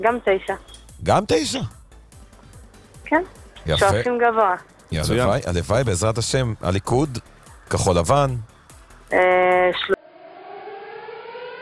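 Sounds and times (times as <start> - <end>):
speech: 0.0 - 1.8, 3.1 - 8.5, 9.1 - 10.0
Home Front Command rocket alert siren: 9.2 - 11.6.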